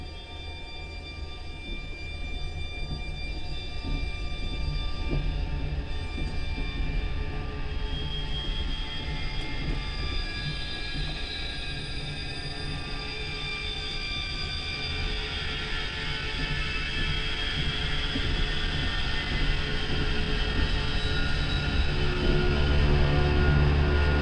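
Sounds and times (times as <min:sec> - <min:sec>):
engine: 0:00.0 - 0:24.2.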